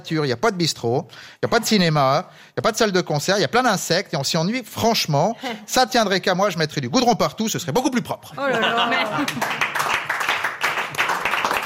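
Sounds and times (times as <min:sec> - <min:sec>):
speech: 0:00.0 - 0:10.0
laughter: 0:08.4 - 0:09.6
audience applause: 0:08.8 - 0:11.6.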